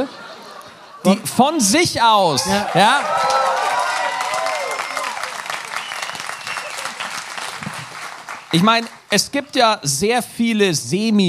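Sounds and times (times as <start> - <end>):
laughter: 0.0 - 3.2
speech: 1.0 - 3.4, 8.5 - 11.2
live audience applause: 2.3 - 9.4
whoops and cheering voices: 2.4 - 7.1.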